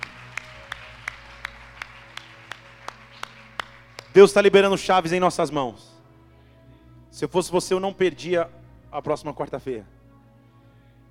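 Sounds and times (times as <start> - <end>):
church audience applauding: 0.0 - 4.6
speech: 4.2 - 5.9, 7.2 - 10.0.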